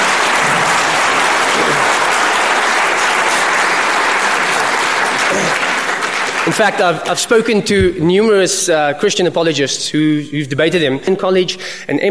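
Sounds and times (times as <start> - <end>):
audience applause: 0.0 - 7.0
speech: 6.5 - 12.0.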